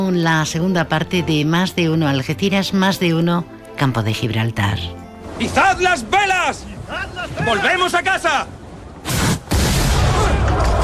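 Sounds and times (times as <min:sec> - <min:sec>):
speech: 0:00.0 - 0:09.2
gunshot blasts: 0:09.0 - 0:10.8.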